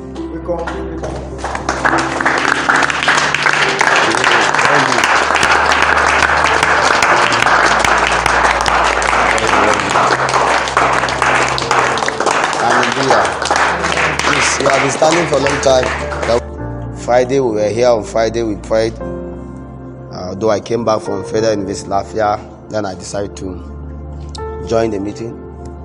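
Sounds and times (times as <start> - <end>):
audience clapping: 0.2 - 16.6
speech: 0.5 - 1.3, 14.8 - 16.4, 17.1 - 19.2, 20.4 - 23.8, 24.7 - 25.4.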